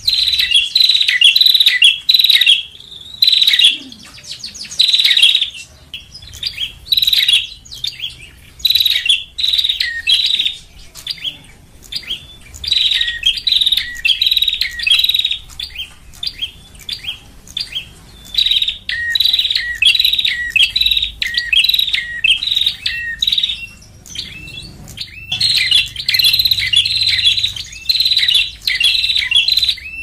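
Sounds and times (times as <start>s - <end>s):
lovebird chirping and twittering: 0.0s - 30.0s.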